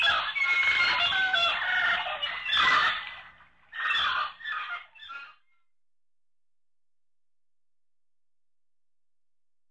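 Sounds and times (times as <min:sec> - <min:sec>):
wild birds howling: 0:00.0 - 0:05.4.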